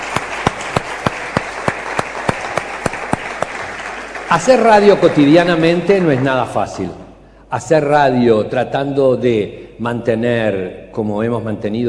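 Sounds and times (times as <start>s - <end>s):
applause: 0.0s - 7.1s
speech: 4.3s - 11.8s.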